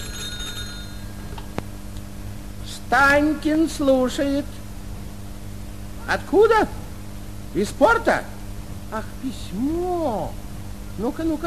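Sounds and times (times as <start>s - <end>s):
telephone ringing: 0.0s - 1.4s
speech: 2.9s - 4.6s, 6.1s - 6.8s, 7.6s - 8.3s, 8.9s - 10.4s, 11.0s - 11.4s.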